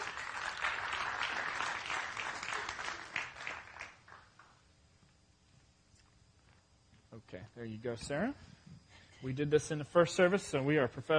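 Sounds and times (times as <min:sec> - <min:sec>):
audience applause during a church service: 0:00.0 - 0:04.5
speech: 0:07.4 - 0:08.5, 0:09.2 - 0:11.1.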